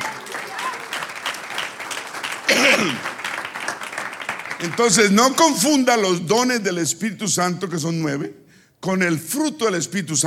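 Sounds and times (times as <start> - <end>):
audience applauding: 0.0 - 5.4
speech: 2.5 - 3.1, 4.6 - 10.2.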